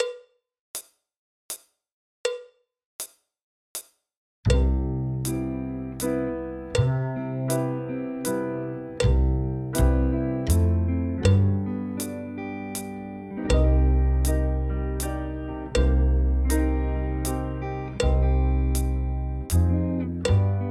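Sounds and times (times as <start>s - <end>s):
drum kit: 4.5s - 20.6s.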